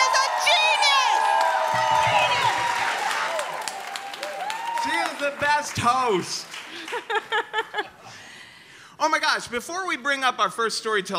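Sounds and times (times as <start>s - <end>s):
crowd shouts and whoops: 0.0s - 5.3s
audience clapping for a performer coming onstage: 0.0s - 7.8s
speech: 5.3s - 8.0s, 9.0s - 11.1s
laughter: 6.6s - 8.3s.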